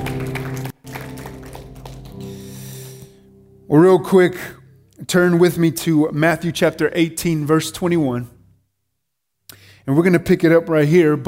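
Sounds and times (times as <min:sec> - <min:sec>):
audience clapping hands in praise: 0:00.0 - 0:03.1
speech: 0:03.7 - 0:08.4, 0:09.8 - 0:11.2.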